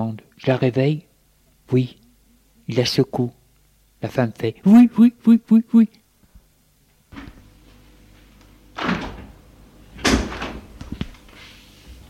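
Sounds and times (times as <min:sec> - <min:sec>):
speech: 0:00.0 - 0:01.1, 0:01.7 - 0:02.0, 0:02.7 - 0:03.4, 0:04.0 - 0:06.0
door opening: 0:08.7 - 0:11.2.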